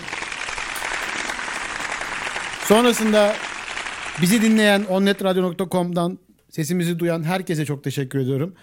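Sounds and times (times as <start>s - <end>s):
applause: 0.0s - 5.4s
speech: 2.7s - 3.5s, 4.2s - 8.6s.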